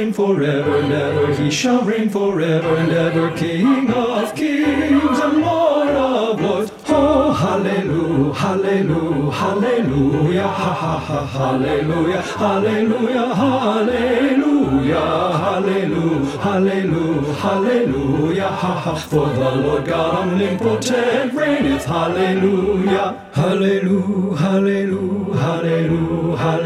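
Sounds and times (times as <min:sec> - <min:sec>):
bass voice part singing a Christmas song practice track: 0:00.0 - 0:26.6.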